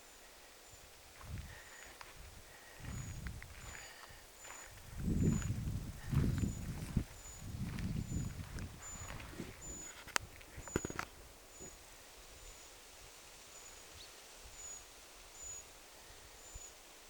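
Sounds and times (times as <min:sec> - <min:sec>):
Eurasian treecreeper thin calls: 0:01.5 - 0:16.9
footstep-like thuds: 0:04.5 - 0:09.6.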